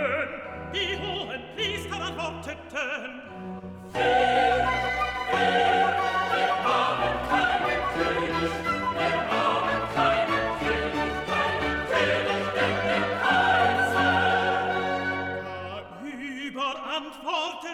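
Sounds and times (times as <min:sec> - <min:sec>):
piano: 0:00.0 - 0:16.7
bass voices singing: 0:04.0 - 0:16.2.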